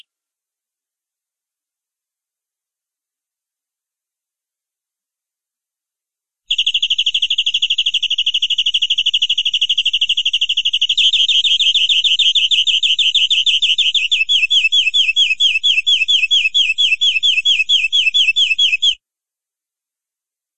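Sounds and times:
canary rolling trill song: 6.5 - 19.0.

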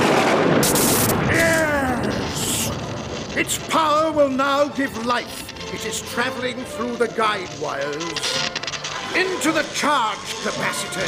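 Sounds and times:
thunder and lightning strike effect: 0.0 - 6.4
thin electrical whine: 0.6 - 11.0
speech: 3.4 - 8.4, 9.1 - 11.0.

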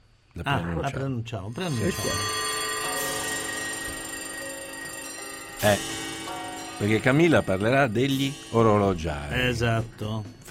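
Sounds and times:
speech: 0.4 - 2.4, 5.6 - 6.0, 6.8 - 10.4
steady electronic telephone ring tone as a call connects: 1.6 - 8.6.

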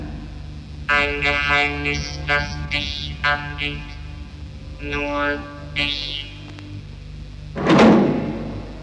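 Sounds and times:
speech: 1.0 - 3.9, 4.8 - 6.3
door closing: 7.5 - 8.7.

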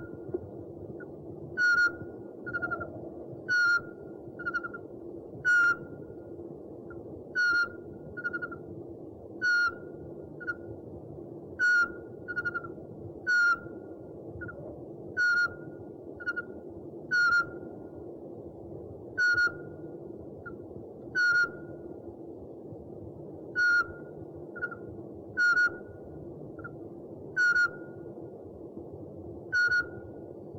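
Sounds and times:
owl hooting: 1.6 - 4.8, 5.4 - 5.9, 7.4 - 8.6, 9.4 - 10.6, 11.6 - 13.7, 15.2 - 16.5, 17.1 - 17.6, 19.2 - 19.7, 21.2 - 21.7, 23.6 - 25.9, 27.4 - 28.0, 29.5 - 30.1.

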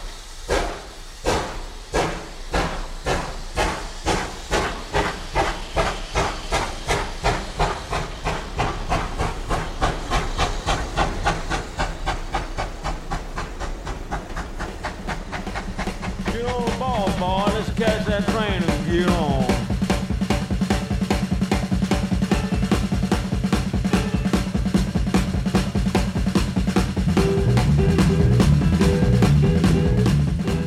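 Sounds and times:
steam locomotive chuffing as it pulls away: 0.0 - 30.6
voices: 16.2 - 19.7.

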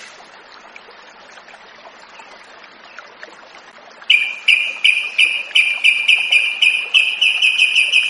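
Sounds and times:
Yellow-vented bulbul rattling trill: 4.1 - 8.0.

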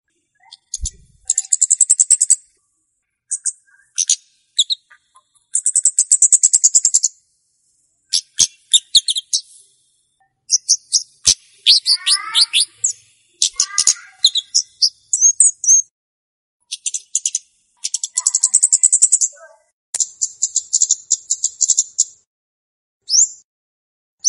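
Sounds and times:
flowerpecker calls used as a lure for catching birds: 0.4 - 2.6, 3.3 - 7.2, 8.1 - 9.6, 10.3 - 15.9, 16.6 - 22.2.

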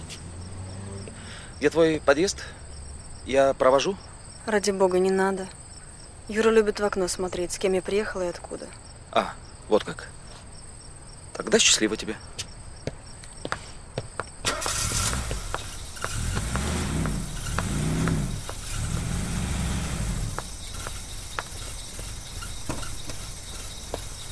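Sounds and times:
car engine rumbling: 0.0 - 3.4, 14.4 - 24.2
speech: 1.6 - 2.6, 3.2 - 5.6, 6.3 - 10.2, 11.4 - 12.5.

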